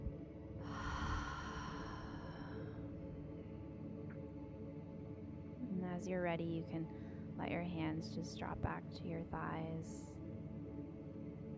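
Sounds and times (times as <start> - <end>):
low steady hum: 0.0 - 11.5
cleansing breath in through the nose and out through the mouth: 0.6 - 3.1
speech: 6.0 - 10.2.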